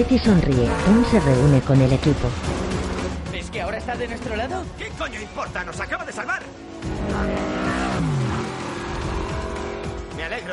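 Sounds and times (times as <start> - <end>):
speech: 0.0 - 2.6, 3.6 - 7.6, 10.2 - 10.5
car engine revving as the car accelerates: 0.0 - 5.4, 6.5 - 10.5.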